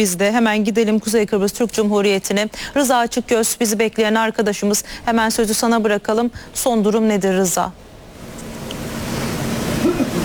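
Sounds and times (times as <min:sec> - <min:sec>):
speech: 0:00.0 - 0:07.9
wind at a harbour waterfront in Northern Cyprus: 0:04.8 - 0:10.2.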